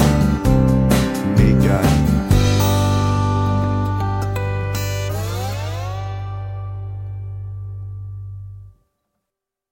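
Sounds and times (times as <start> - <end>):
drums: 0.0 - 5.3.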